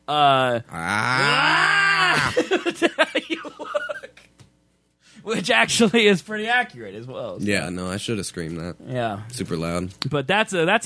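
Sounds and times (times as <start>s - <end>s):
speech: 0.1s - 1.3s, 2.2s - 3.9s, 5.2s - 10.8s
loud guttural grunt and groaning growl: 0.7s - 2.3s.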